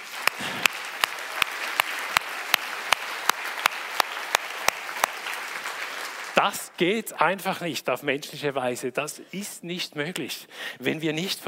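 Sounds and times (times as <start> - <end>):
audience applause: 0.0 - 6.8
speech: 6.4 - 11.4.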